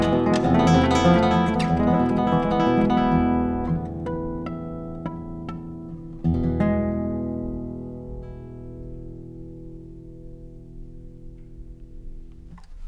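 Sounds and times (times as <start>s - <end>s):
voice: 0.0s - 3.9s
cathedral guitars: 0.0s - 12.8s.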